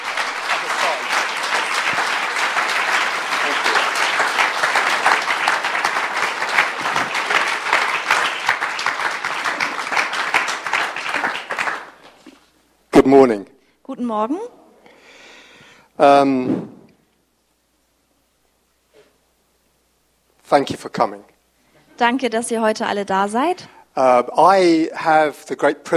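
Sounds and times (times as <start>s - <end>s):
thunderous audience applause: 0.0s - 12.1s
speech: 14.0s - 14.5s, 16.0s - 16.7s, 20.5s - 21.3s, 22.0s - 25.9s.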